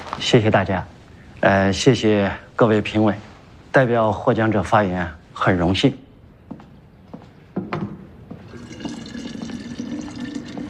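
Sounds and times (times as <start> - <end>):
speech: 0.2 - 6.1
water being poured to boil: 8.5 - 10.6.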